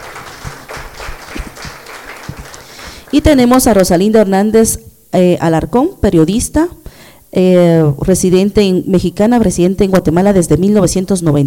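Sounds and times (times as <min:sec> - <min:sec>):
audience applause: 0:00.0 - 0:03.3
speech: 0:03.1 - 0:11.4.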